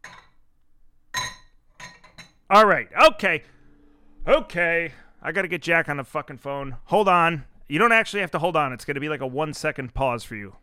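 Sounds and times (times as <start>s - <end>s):
brandy bottle clinking against a glass: 1.1s - 2.4s
speech: 2.5s - 3.6s, 4.2s - 10.6s.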